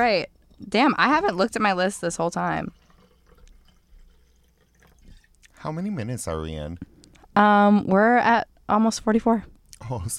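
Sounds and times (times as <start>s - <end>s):
speech: 0.0s - 2.8s, 5.6s - 10.1s
wine pouring into a glass: 0.4s - 5.4s.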